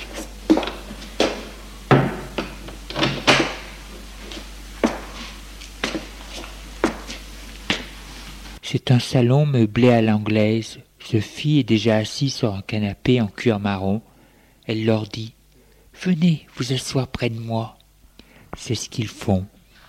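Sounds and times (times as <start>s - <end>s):
door being opened: 0.6s - 3.7s
speech: 8.8s - 14.1s, 14.7s - 15.4s, 16.0s - 17.8s, 18.5s - 19.5s.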